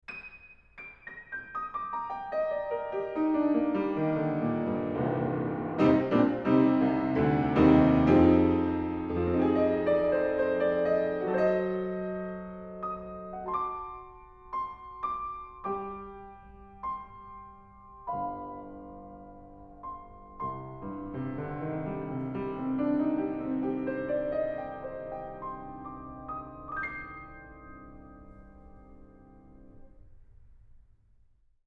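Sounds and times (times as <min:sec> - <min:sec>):
piano: 0:00.0 - 0:31.4.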